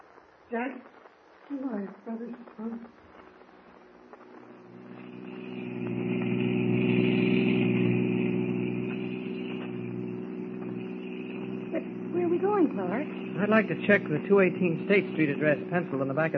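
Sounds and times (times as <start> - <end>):
speech: 0.5 - 3.0, 12.4 - 16.3
car engine running steadily with gentle revving: 3.9 - 16.3.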